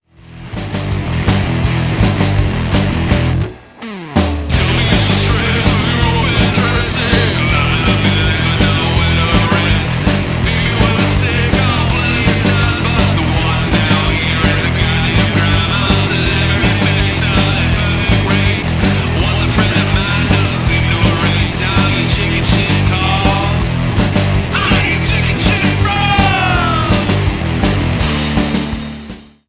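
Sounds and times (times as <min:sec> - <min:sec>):
wrecked chords: 0:00.0 - 0:29.1.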